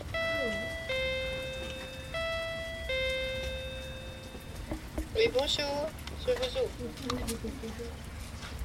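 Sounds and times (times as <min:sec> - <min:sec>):
electronic doorbell at a nursery door: 0:00.0 - 0:04.8
speech: 0:05.2 - 0:08.1.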